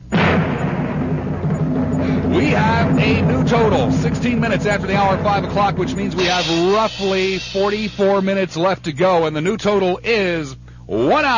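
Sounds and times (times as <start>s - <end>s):
drum roll: 0.0s - 9.0s
speech: 3.0s - 11.3s.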